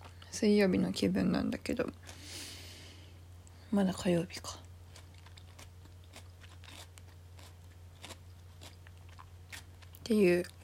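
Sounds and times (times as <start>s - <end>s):
chewing homemade tsukune: 0.0s - 0.3s, 4.8s - 10.6s
faint low hum: 0.0s - 10.6s
speech: 0.4s - 2.3s, 3.7s - 4.6s, 10.1s - 10.6s.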